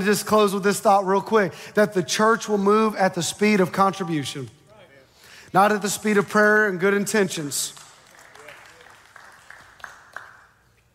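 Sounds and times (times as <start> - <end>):
speech: 0.0 - 4.6, 5.5 - 7.8
weak audience clapping: 7.6 - 10.9.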